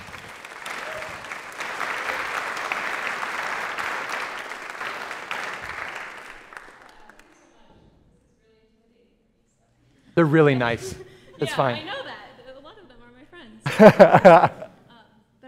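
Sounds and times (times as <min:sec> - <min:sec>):
audience clapping to welcome a speaker: 0:00.0 - 0:07.6
speech: 0:10.2 - 0:12.0, 0:13.8 - 0:14.6
laughter: 0:10.2 - 0:12.2, 0:13.6 - 0:14.9.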